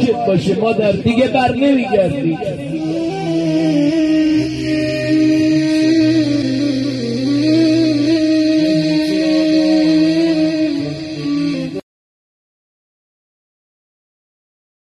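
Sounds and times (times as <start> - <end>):
sad music about a mother: 0.0 - 11.8.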